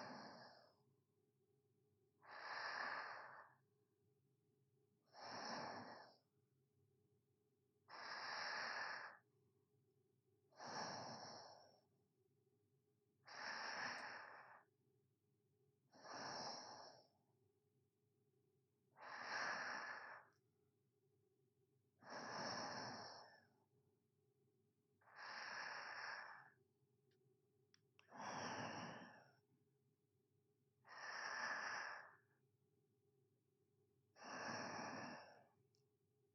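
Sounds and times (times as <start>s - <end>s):
sleeping breathing ASMR: 2.2s - 3.6s, 5.2s - 6.2s, 7.9s - 9.2s, 10.6s - 11.8s, 13.3s - 14.7s, 16.0s - 17.1s, 19.0s - 20.4s, 22.0s - 23.5s, 25.0s - 26.6s, 28.1s - 29.4s, 30.8s - 32.3s, 34.2s - 35.5s.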